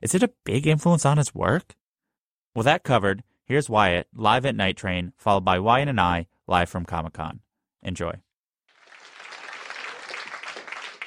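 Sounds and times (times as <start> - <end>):
speech: 0.0 - 1.8, 2.6 - 8.2
audience clapping: 8.7 - 11.0.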